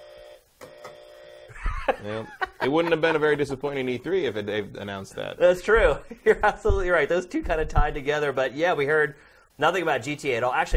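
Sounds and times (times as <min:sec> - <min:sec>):
game show buzzer: 0:00.0 - 0:01.5
laughter: 0:01.5 - 0:03.8
speech: 0:01.9 - 0:10.7.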